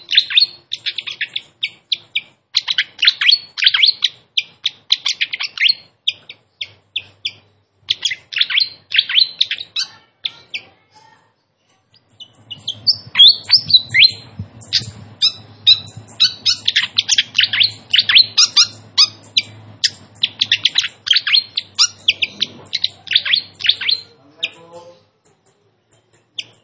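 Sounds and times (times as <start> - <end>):
flycatcher giving sharp high notes: 0.0 - 10.8, 12.0 - 24.9.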